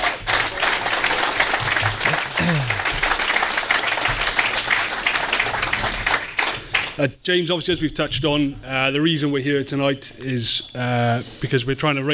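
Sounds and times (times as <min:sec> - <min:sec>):
audience round of applause: 0:00.0 - 0:07.0
speech: 0:07.0 - 0:12.1.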